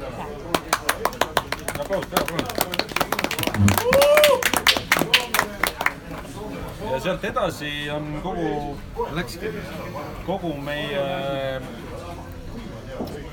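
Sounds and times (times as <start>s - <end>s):
applause for a story queen at a gathering: 0.5s - 6.3s
speech: 1.9s - 2.9s, 7.0s - 11.8s.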